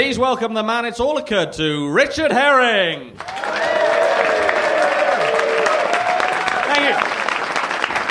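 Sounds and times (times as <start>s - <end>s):
speech: 0.2s - 3.3s
audience clapping at a live comedy show: 3.2s - 8.0s.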